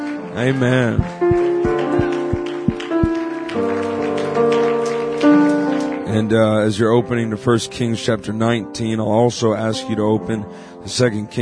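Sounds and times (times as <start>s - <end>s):
speech: 0.4s - 2.0s, 6.2s - 11.3s
low thumps: 1.0s - 3.1s
crowd clapping: 1.1s - 6.1s.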